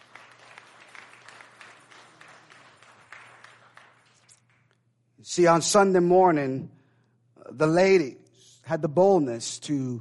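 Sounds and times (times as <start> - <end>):
audience clapping hands: 0.0 - 4.9
speech: 5.2 - 6.8, 7.5 - 9.9.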